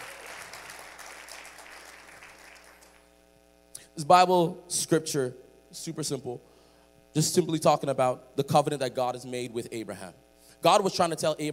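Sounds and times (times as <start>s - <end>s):
audience clapping: 0.0s - 3.1s
speech: 4.0s - 6.5s, 7.1s - 11.5s.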